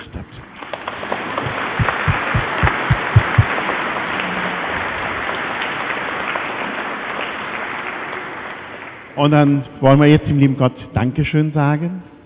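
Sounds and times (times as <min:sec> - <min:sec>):
audience applauding in a large room: 0:00.6 - 0:09.2
speech: 0:09.2 - 0:12.1.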